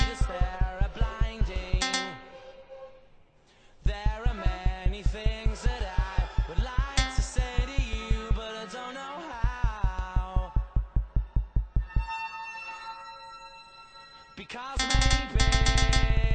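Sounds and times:
cello playing dubstep: 0.0s - 2.5s, 3.9s - 8.5s, 9.5s - 13.1s, 14.8s - 16.3s.

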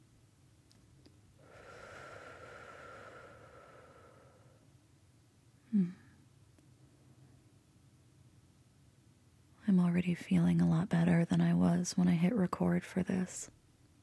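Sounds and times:
slow deep exhale: 1.4s - 4.7s
speech: 9.7s - 13.6s.

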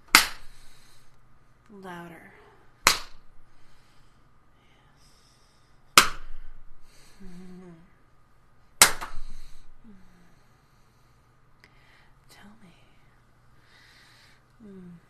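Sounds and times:
hand slapping skin: 0.0s - 0.8s, 2.8s - 3.3s, 5.9s - 6.5s, 8.8s - 9.5s
speech: 1.7s - 2.4s
wavering vocal moan: 7.2s - 8.0s, 14.6s - 15.0s.

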